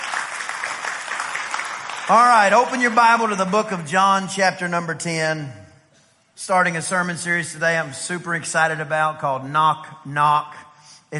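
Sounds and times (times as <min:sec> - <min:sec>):
audience clapping hands: 0:00.0 - 0:03.9
speech: 0:02.1 - 0:05.6, 0:06.4 - 0:11.1.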